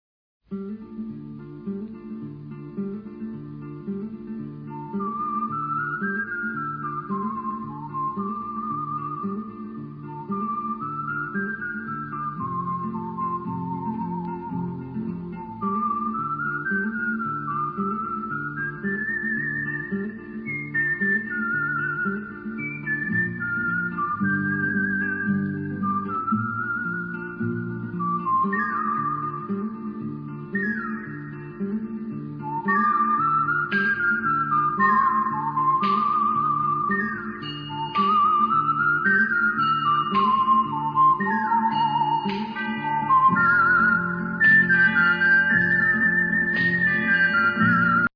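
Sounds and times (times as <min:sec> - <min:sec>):
whistle: 0:04.6 - 0:48.1.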